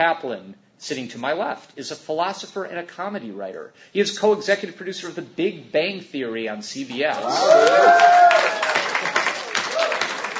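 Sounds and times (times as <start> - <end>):
speech: 0.0 - 8.5
audience applause: 7.1 - 10.3.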